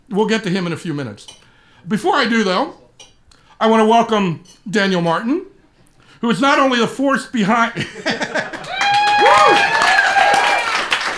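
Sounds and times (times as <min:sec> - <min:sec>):
speech: 0:00.1 - 0:02.8, 0:03.6 - 0:05.5, 0:06.2 - 0:08.4
laughter: 0:07.8 - 0:09.8
audience applause: 0:08.4 - 0:11.1
whoops and cheering voices: 0:08.5 - 0:11.1.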